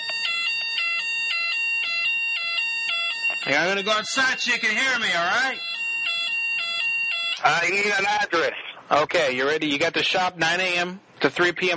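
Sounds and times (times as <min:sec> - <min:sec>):
fire alarm: 0:00.0 - 0:08.2
speech: 0:03.4 - 0:05.7, 0:07.4 - 0:11.7.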